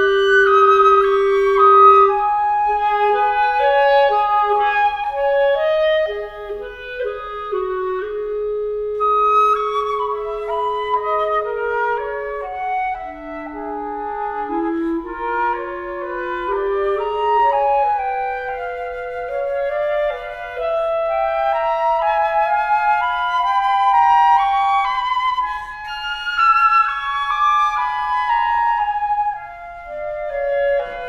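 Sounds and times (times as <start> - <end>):
clarinet playing a moderato duo: 0.0 - 31.0
flute playing a moderato duo: 0.0 - 31.0.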